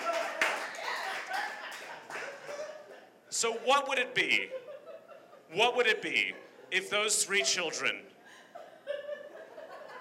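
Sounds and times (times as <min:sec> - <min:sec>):
audience clapping: 0:00.0 - 0:02.7
laughter: 0:00.0 - 0:03.2, 0:04.4 - 0:10.0
speech: 0:03.4 - 0:04.6, 0:05.5 - 0:08.1.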